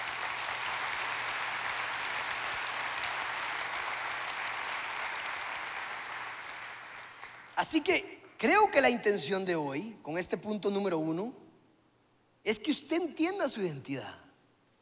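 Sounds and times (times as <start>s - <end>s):
audience applause: 0.0s - 7.6s
speech: 7.6s - 11.4s, 12.4s - 14.2s.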